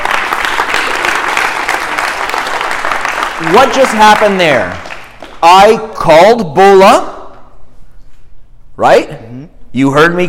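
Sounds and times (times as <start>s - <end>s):
audience applause: 0.0s - 5.6s
speech: 3.4s - 4.8s, 5.4s - 7.1s, 8.8s - 10.2s.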